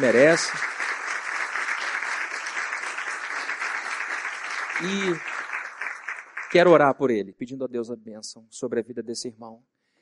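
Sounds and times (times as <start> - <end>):
speech: 0.0 - 0.7, 4.8 - 5.3, 6.5 - 9.7
crowd applause: 0.0 - 6.8.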